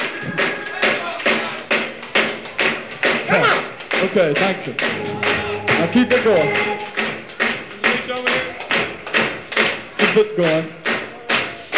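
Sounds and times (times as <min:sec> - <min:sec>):
hands clapping along to a drum beat: 0:00.0 - 0:11.7
drum beat: 0:02.7 - 0:09.5
speech: 0:04.2 - 0:05.2, 0:05.8 - 0:06.8, 0:10.1 - 0:10.8.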